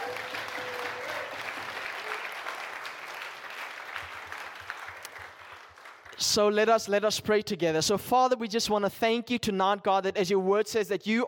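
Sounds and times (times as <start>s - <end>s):
audience clapping hands: 0.0s - 6.6s
speech: 6.2s - 11.2s.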